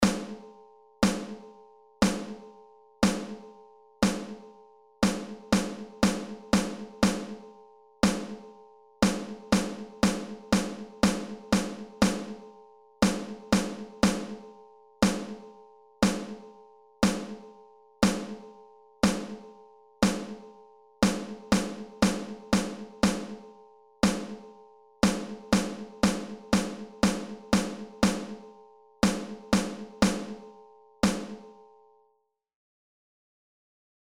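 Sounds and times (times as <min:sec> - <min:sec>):
snare drum rhythms: 0:00.0 - 0:00.4, 0:01.0 - 0:01.4, 0:02.0 - 0:02.4, 0:03.0 - 0:03.4, 0:04.0 - 0:04.4, 0:05.0 - 0:07.4, 0:08.0 - 0:08.4, 0:09.0 - 0:12.4, 0:13.0 - 0:14.4, 0:15.0 - 0:15.4, 0:16.0 - 0:16.4, 0:17.0 - 0:17.4, 0:18.0 - 0:18.4, 0:19.0 - 0:19.4, 0:20.0 - 0:20.4, 0:21.0 - 0:23.4, 0:24.0 - 0:24.4, 0:25.0 - 0:28.4, 0:29.0 - 0:30.4, 0:31.0 - 0:31.5.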